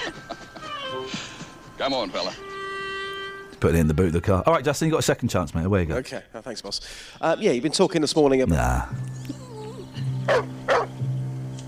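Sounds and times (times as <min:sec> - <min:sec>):
speech: 0:01.8 - 0:02.5, 0:03.6 - 0:09.3, 0:10.3 - 0:10.6
dog barking: 0:10.3 - 0:11.0.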